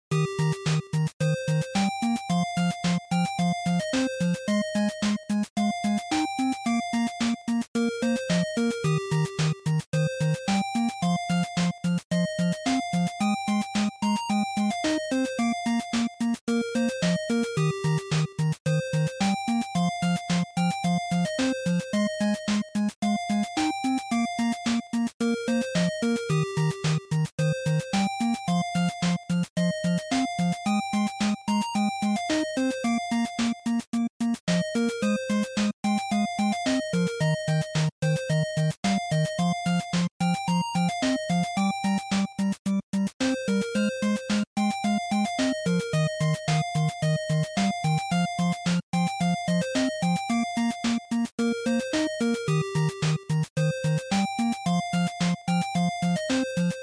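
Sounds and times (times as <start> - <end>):
NES stage chiptune game music: 0.1 - 56.8.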